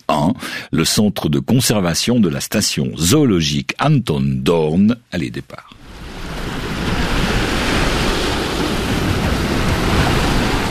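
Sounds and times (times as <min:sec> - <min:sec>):
speech: 0:00.2 - 0:05.8
wind: 0:04.5 - 0:10.6
sea waves on the shore at Portici on the Gulf of Naples: 0:05.8 - 0:10.6.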